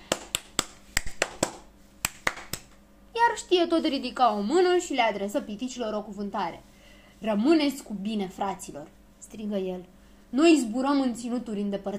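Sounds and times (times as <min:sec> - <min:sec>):
hands clapping: 0:00.0 - 0:02.8
speech: 0:03.4 - 0:11.9.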